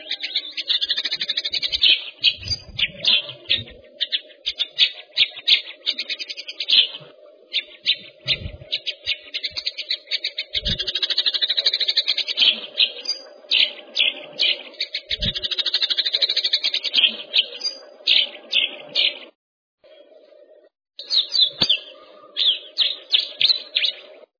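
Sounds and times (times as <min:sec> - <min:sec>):
bird song of chirps, whistles and trills: 0:00.0 - 0:24.3.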